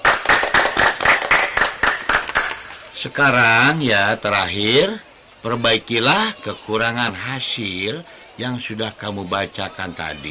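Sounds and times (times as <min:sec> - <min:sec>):
group of children clapping hands in a steady quick rhythm: 0:00.0 - 0:02.8
speech: 0:03.0 - 0:10.2.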